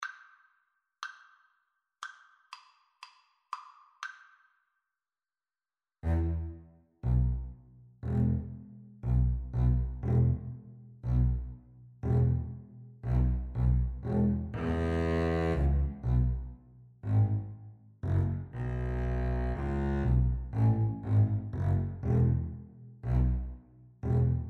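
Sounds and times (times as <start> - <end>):
double bass duet: 6.0 - 24.4.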